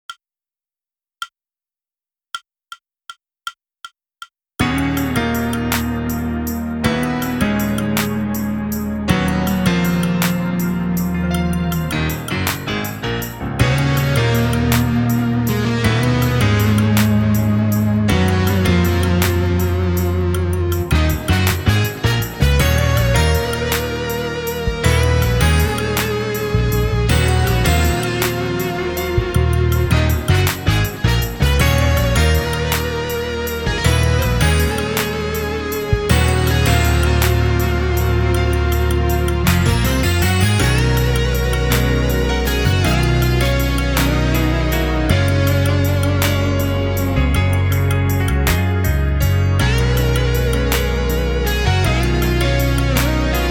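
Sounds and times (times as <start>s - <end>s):
music without drums: 4.6s - 53.4s.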